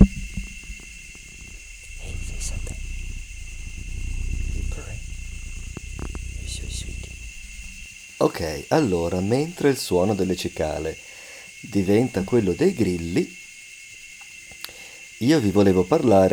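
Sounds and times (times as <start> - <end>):
cat purring: 0.0 - 9.5
speech: 8.2 - 11.0, 11.6 - 13.4, 15.2 - 16.3.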